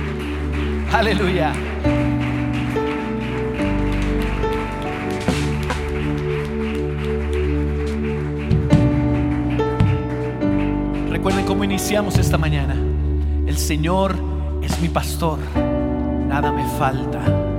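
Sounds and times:
audience applause: 0.0 - 12.8
speech: 0.9 - 2.2, 11.6 - 12.9, 13.6 - 15.6, 16.4 - 17.4.

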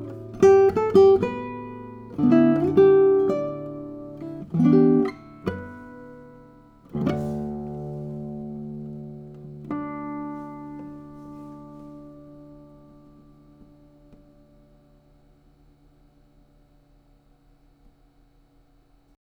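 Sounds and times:
nylon-string classical guitar playing in concert: 0.0 - 15.2.

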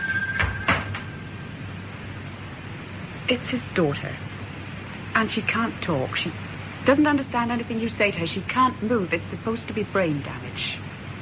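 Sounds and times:
door being shut with latch click: 0.0 - 1.2
quiet steady hum: 0.0 - 11.2
speech: 3.3 - 4.3, 5.2 - 10.9.

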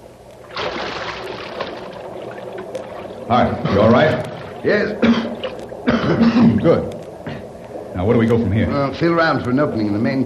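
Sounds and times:
water churning and sloshing: 0.3 - 10.2
person dropping into sewer water: 0.4 - 7.4
speech: 3.3 - 5.3, 6.1 - 7.0, 8.0 - 10.2.

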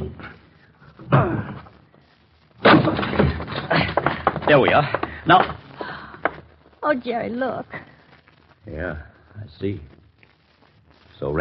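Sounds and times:
door being forced in with heavy crashing blows: 2.6 - 5.6
speech: 4.5 - 5.6, 6.9 - 7.8, 8.7 - 9.9.

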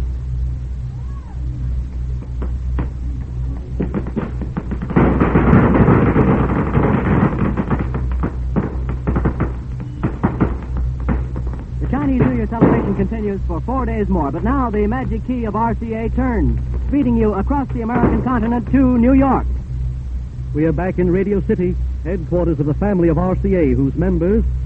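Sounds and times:
faint voices murmuring: 0.0 - 24.6
steady low rumble: 0.0 - 24.6
string of firecrackers exploding: 2.2 - 19.5
speech: 13.0 - 19.5, 20.5 - 24.6.

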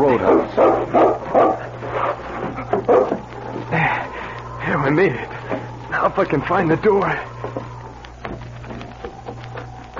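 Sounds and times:
dog barking and yipping: 0.0 - 1.8, 2.8 - 3.3
steady low hum: 0.0 - 9.9
speech: 6.2 - 7.3.

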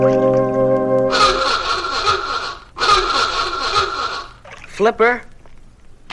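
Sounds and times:
klaxon horn blowing: 0.0 - 4.3
speech: 4.8 - 5.3.

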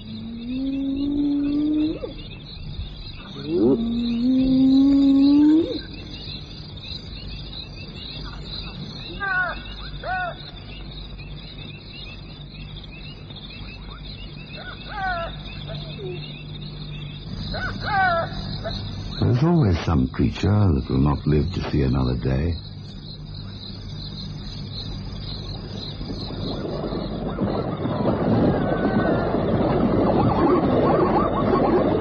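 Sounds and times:
hyena and jackal mournful howling chorus: 0.0 - 7.3, 7.9 - 10.8, 13.1 - 19.4, 24.4 - 32.0
speech: 20.0 - 22.7.

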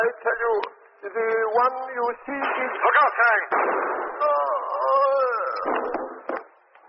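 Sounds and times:
speech: 0.1 - 6.4
gunshot fired through a window: 2.4 - 4.4, 5.6 - 6.6.

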